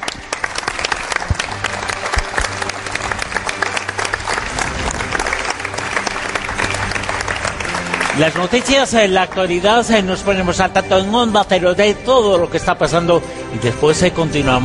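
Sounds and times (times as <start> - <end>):
live audience applause at a radio program: 0.0 - 10.2
speech: 8.2 - 14.6.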